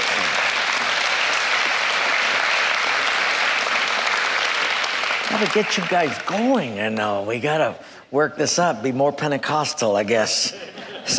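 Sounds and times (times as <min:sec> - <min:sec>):
audience applause: 0:00.0 - 0:06.7
speech: 0:05.4 - 0:11.1
laughter: 0:10.4 - 0:11.1.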